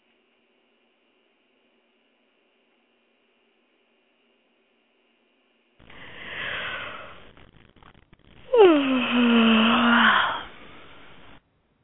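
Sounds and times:
woman yawning: 8.5 - 11.0.

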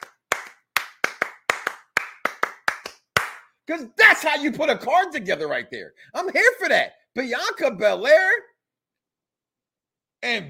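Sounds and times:
single person clapping hands in a steady rhythm: 0.0 - 3.5
speech: 3.7 - 8.5, 10.2 - 10.4.

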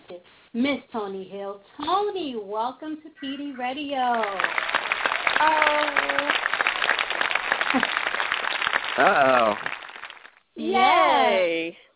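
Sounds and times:
speech: 0.5 - 4.7, 5.4 - 6.5, 9.0 - 9.8, 10.6 - 11.8
applause: 4.1 - 11.6.

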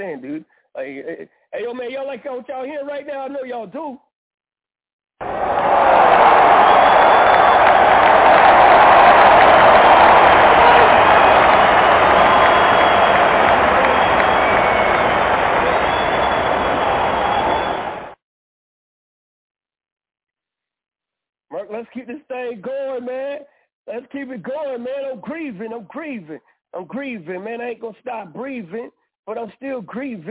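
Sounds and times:
speech: 0.0 - 4.1, 21.8 - 30.2
crowd applause: 5.2 - 18.2.

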